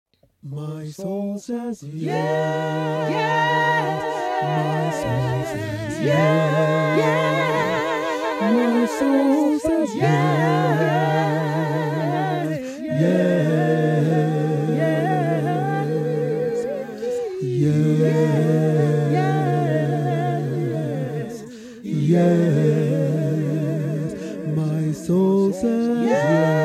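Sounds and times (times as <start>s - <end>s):
gospel singing: 0.4s - 26.6s.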